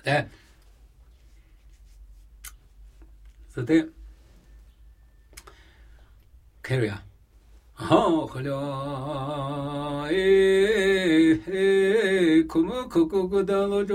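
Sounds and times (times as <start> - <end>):
Namuyi Tibetan ritual chanting: 7.8 - 13.9.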